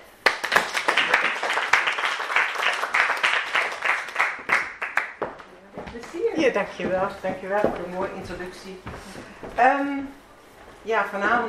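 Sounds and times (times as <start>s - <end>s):
audience applause: 0.2s - 5.4s
speech: 6.4s - 10.2s, 10.8s - 11.4s.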